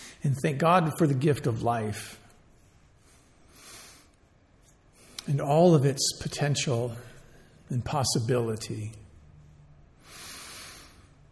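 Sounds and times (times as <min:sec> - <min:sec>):
low steady hum: 0:00.0 - 0:11.3
speech: 0:00.2 - 0:02.2, 0:05.3 - 0:07.1, 0:07.7 - 0:09.0
breath intake: 0:10.0 - 0:11.2.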